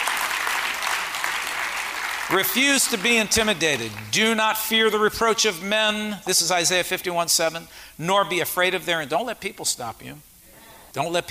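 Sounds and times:
audience clapping: 0.0 - 4.4
speech: 2.3 - 10.3, 10.9 - 11.2.

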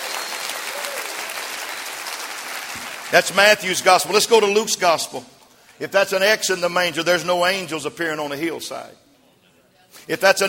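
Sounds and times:
crowd clapping: 0.0 - 4.2
speech: 2.8 - 9.0, 9.9 - 10.4.

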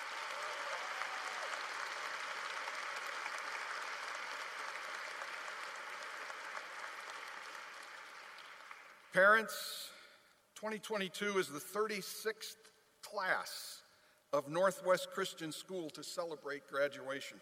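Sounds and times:
audience applauding: 0.0 - 9.1
speech: 9.2 - 9.9, 10.6 - 17.4.

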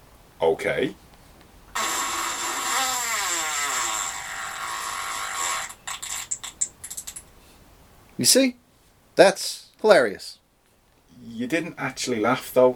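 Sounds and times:
speech: 0.4 - 1.0, 8.2 - 8.6, 9.2 - 10.4, 11.3 - 12.7
mouth raspberry imitating a fart: 1.7 - 6.7.

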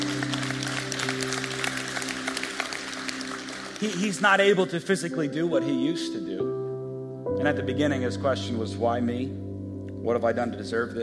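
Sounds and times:
audience applause: 0.0 - 4.6
speech: 3.8 - 6.5, 7.4 - 9.4, 10.0 - 11.0.

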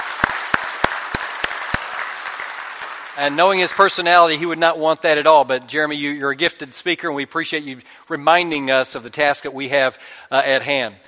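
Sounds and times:
audience clapping: 0.0 - 4.6
speech: 3.2 - 11.0.

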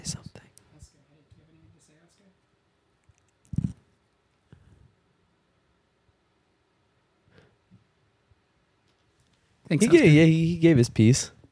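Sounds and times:
chewing on a microphone: 3.0 - 3.9
speech: 9.7 - 11.4.

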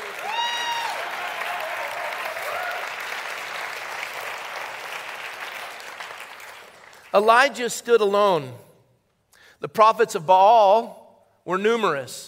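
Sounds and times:
audience applause: 0.0 - 7.1
speech: 7.1 - 8.6, 9.6 - 12.2.

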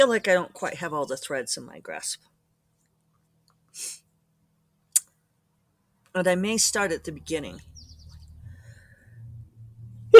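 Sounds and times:
speech: 0.0 - 2.3, 3.8 - 4.0, 6.1 - 7.7
low steady hum: 6.2 - 10.1.

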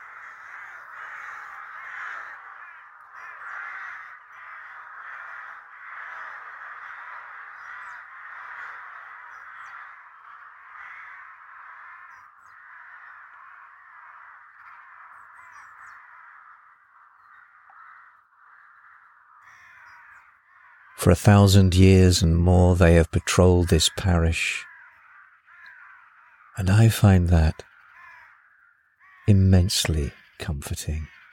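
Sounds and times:
large flock of crows cawing and taking off: 0.0 - 21.5, 23.8 - 31.3
speech: 21.0 - 24.7, 26.6 - 27.7, 29.3 - 31.2.

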